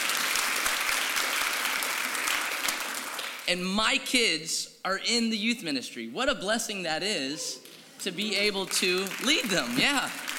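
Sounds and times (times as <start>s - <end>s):
audience applause: 0.0s - 3.4s, 8.5s - 10.3s
speech: 3.5s - 10.2s.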